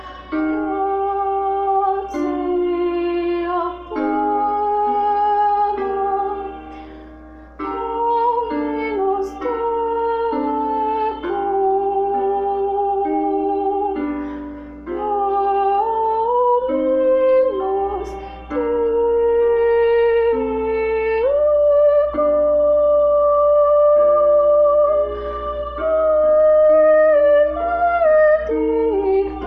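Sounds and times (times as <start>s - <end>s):
soprano singing solo: 0.0s - 7.0s, 7.6s - 29.4s.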